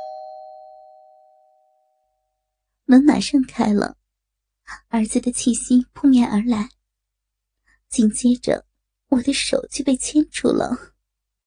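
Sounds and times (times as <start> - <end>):
electronic doorbell chime: 0.0 - 2.2
speech: 2.9 - 4.0, 4.7 - 6.8, 7.9 - 10.9.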